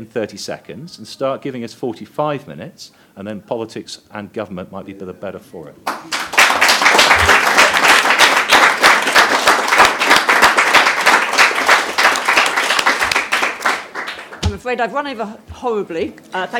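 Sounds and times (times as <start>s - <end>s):
speech: 0.0s - 6.3s, 14.6s - 16.5s
audience applause: 5.9s - 14.4s.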